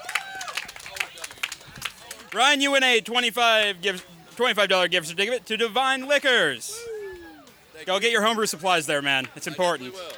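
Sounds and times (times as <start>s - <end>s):
small crowd clapping: 0.0s - 2.9s, 9.1s - 10.1s
murmur of voices: 0.0s - 10.1s
speech: 2.3s - 6.9s, 7.8s - 10.1s.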